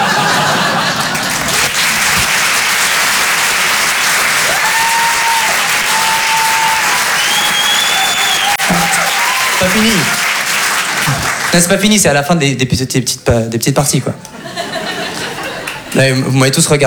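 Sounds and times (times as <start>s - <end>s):
laughter: 0.0s - 2.6s, 14.2s - 16.3s
crowd applause: 0.0s - 11.9s, 14.4s - 16.2s
whistles: 7.1s - 9.4s
speech: 9.7s - 10.2s, 11.1s - 14.3s, 16.0s - 16.8s.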